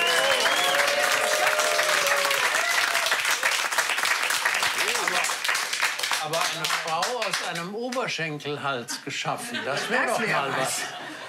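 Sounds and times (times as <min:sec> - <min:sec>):
audience applause: 0:00.0 - 0:07.7
speech: 0:06.3 - 0:11.2
laughter: 0:08.8 - 0:11.2.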